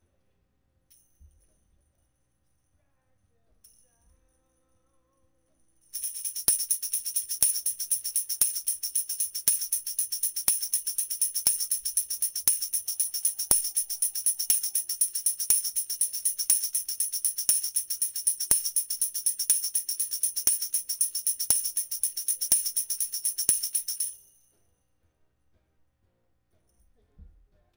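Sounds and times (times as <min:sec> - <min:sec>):
tambourine: 0:00.9 - 0:24.6.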